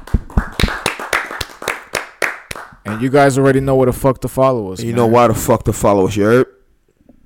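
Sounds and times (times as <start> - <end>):
live hand clap: 0.0 - 3.2
speech: 2.9 - 6.6.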